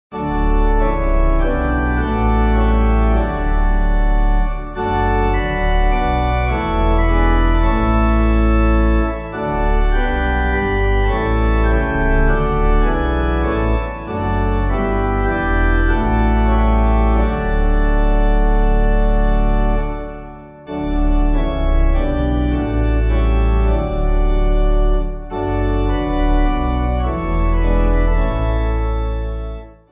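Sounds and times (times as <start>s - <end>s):
pipe organ hymn backing: 0.1s - 29.9s.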